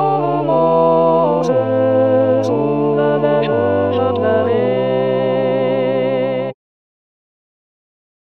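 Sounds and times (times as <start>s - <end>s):
alto voice chanting: 0.0s - 6.6s.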